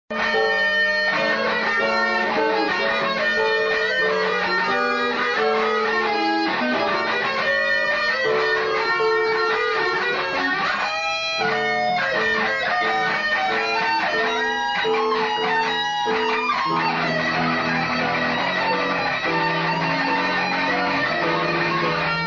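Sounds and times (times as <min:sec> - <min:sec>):
guitar practice: 0:00.1 - 0:22.2.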